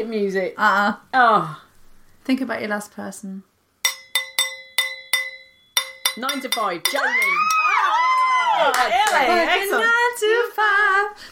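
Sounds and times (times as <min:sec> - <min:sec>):
speech: 0:00.0 - 0:01.6, 0:02.3 - 0:03.5, 0:06.2 - 0:08.0, 0:08.6 - 0:11.2
cheese knife tapping a wine glass: 0:03.9 - 0:07.6.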